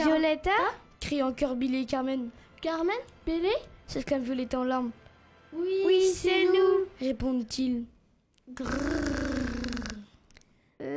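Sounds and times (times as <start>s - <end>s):
speech: 0.0s - 9.2s
growl: 8.6s - 10.1s.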